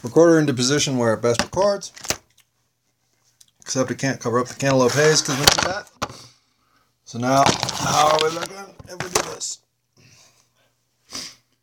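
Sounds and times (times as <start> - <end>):
speech: 0.0 - 2.1, 3.7 - 5.9, 7.1 - 9.6
person blowing nose: 11.1 - 11.5.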